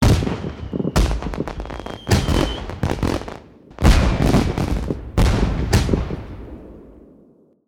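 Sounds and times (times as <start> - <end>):
festive victory fireworks: 0.0 - 7.1.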